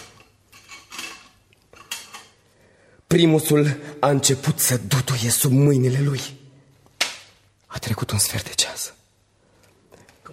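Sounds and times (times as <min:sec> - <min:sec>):
surgical instruments being handled: 0:00.0 - 0:02.4
speech: 0:03.1 - 0:06.5, 0:07.8 - 0:09.0.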